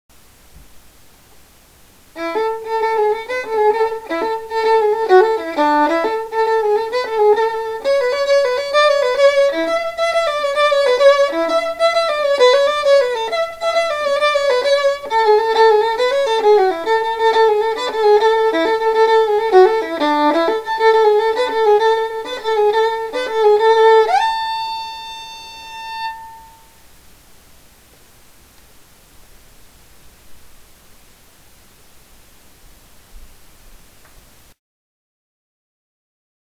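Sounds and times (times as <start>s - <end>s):
violin playing: 2.1s - 26.8s.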